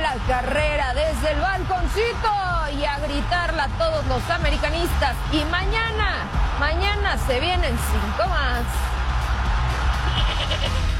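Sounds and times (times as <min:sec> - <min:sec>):
speech: 0:00.2 - 0:08.9
goat bleating: 0:10.1 - 0:10.8.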